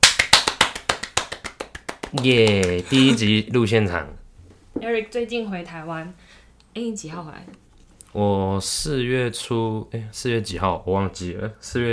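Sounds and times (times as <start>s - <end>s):
hand clapping: 0.0s - 3.2s
speech: 2.1s - 4.2s, 4.8s - 11.9s.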